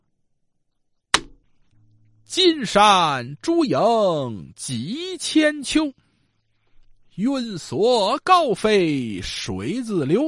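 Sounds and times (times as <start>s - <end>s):
storyteller's wooden block slapped onto a table: 1.1s - 1.4s
speech: 2.4s - 6.0s, 7.2s - 10.2s.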